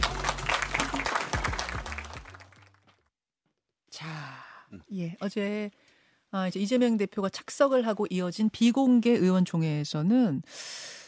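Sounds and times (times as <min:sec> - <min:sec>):
applause: 0:00.0 - 0:03.0
speech: 0:04.9 - 0:11.0.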